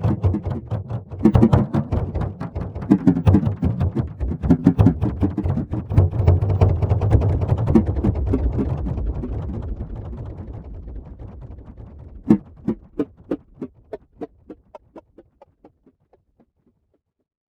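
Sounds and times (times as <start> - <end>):
drum pattern: 0.0 - 8.6, 12.3 - 15.7.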